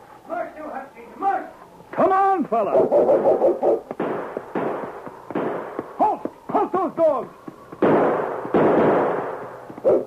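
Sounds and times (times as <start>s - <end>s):
speech: 2.5s - 3.4s
gunshots: 2.8s - 6.8s, 7.8s - 10.0s.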